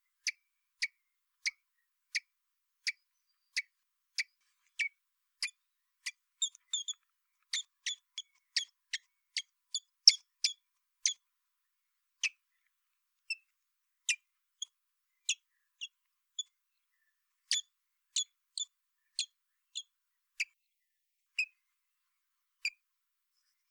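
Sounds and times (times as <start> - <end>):
common blackbird ticking calls: 0.1 - 11.2, 13.3 - 16.6, 17.4 - 20.6.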